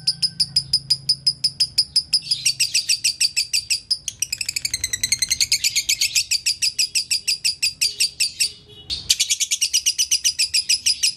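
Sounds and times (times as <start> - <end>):
lovebird chattering chirps: 0.0 - 11.1.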